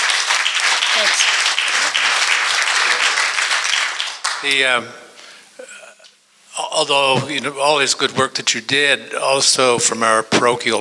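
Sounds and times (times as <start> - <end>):
crowd applauding: 0.0 - 4.8
speech: 1.0 - 2.3, 4.4 - 5.1, 6.7 - 10.7.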